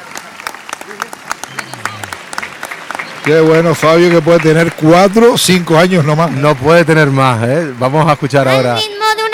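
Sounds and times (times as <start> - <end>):
crowd loud applause: 0.0 - 9.3
speech: 3.2 - 8.9.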